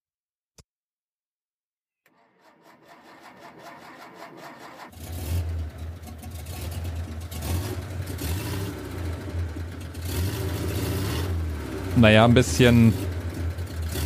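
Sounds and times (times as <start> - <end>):
Porsche 356 Speedster engine cranking, running and driving away: 2.1 - 14.0
speech: 12.0 - 13.0.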